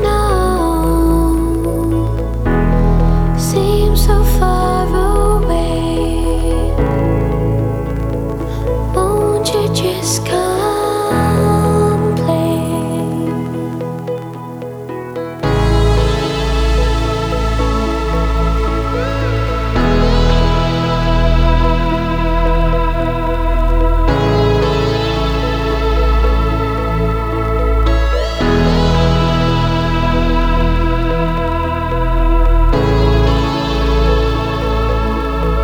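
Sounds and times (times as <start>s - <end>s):
bells: 0.0s - 35.6s.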